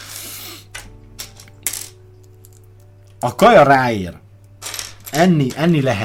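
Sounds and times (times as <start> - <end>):
plastic Lego pieces clicking onto a Lego Batmobile build: 0.7 - 2.7, 4.5 - 6.0
speech: 3.2 - 4.2, 5.2 - 6.0.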